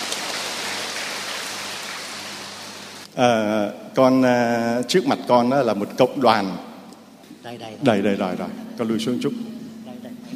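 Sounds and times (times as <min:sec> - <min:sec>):
round of applause: 0:00.0 - 0:03.0
speech: 0:03.2 - 0:06.7, 0:07.4 - 0:09.5.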